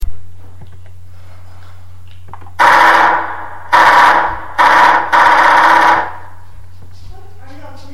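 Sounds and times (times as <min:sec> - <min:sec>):
machine gun firing: 0:02.6 - 0:06.3.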